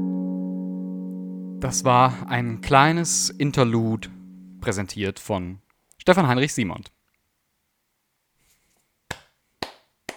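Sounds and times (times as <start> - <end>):
speech: 1.6 - 7.0
slow polite hand claps: 9.1 - 10.1.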